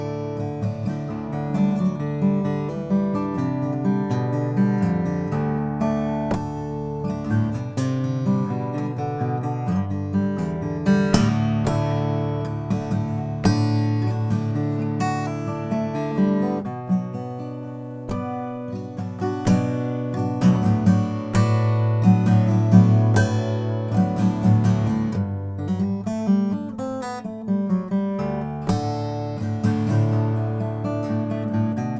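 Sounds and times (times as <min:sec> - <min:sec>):
African blackwood acoustic guitar: 0:00.0 - 0:31.9.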